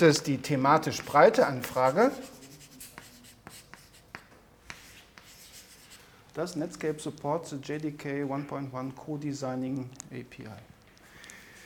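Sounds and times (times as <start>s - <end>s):
speech: 0.0s - 2.4s, 6.4s - 10.7s
pen scratching as notes are written: 1.6s - 6.0s.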